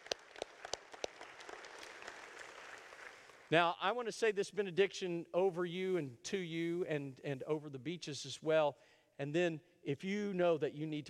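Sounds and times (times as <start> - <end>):
person clapping hands: 0.0 - 3.5
speech: 3.5 - 11.0.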